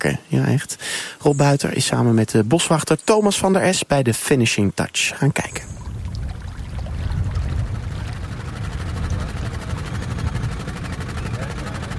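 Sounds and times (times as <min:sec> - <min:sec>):
speech: 0:00.0 - 0:05.8
soft hum of cranes working: 0:05.7 - 0:11.9.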